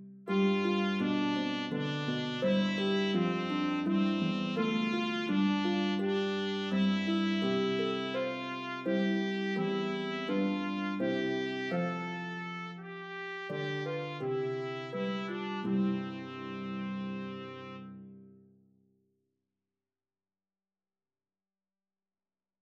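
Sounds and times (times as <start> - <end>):
Bb trumpet playing a lullaby: 0.3 - 18.2
harp playing a lullaby: 0.3 - 18.3.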